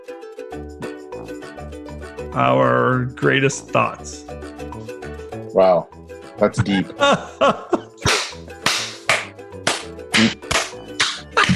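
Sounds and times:
speech: 2.4s - 4.5s, 5.5s - 7.8s
laughter: 6.5s - 8.2s, 11.1s - 11.5s
hand clapping: 8.0s - 11.5s.

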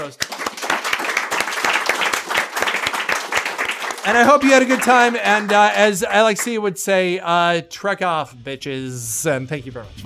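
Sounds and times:
speech: 0.0s - 0.4s, 4.0s - 10.0s
round of applause from a group: 0.0s - 6.6s.

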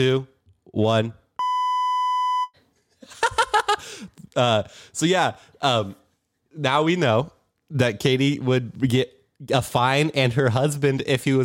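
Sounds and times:
speech: 0.0s - 1.2s, 4.4s - 6.0s, 6.6s - 11.4s
censor bleep tone: 1.4s - 2.6s
laughter: 2.9s - 4.4s.

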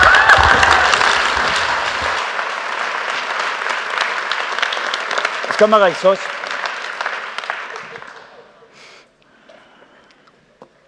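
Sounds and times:
audience applause: 0.0s - 8.6s
speech: 5.6s - 6.3s.

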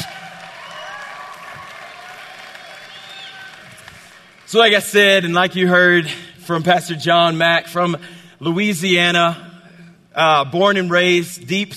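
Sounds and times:
audience applause: 0.0s - 4.8s
speech: 4.5s - 9.5s, 10.2s - 11.7s.

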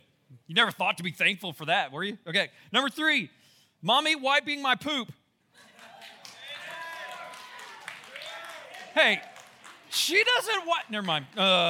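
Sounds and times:
speech: 0.5s - 5.7s, 9.0s - 9.3s, 9.9s - 11.6s
clapping: 5.7s - 11.6s.

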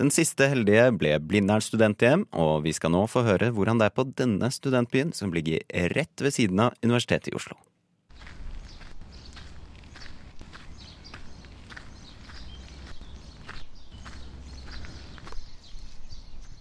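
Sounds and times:
speech: 0.0s - 7.7s
footsteps walking uphill outdoors: 8.1s - 16.5s
constant low rumbling background: 8.2s - 15.5s.

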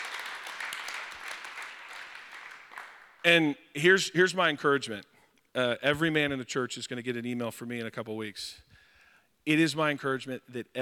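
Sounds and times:
audience clapping: 0.0s - 3.3s
speech: 3.2s - 8.7s, 9.4s - 10.8s.

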